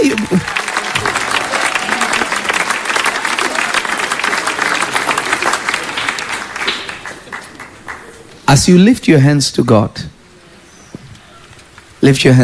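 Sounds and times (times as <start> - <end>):
audience clapping: 0.0 - 8.6
speech: 8.5 - 10.1, 12.0 - 12.4.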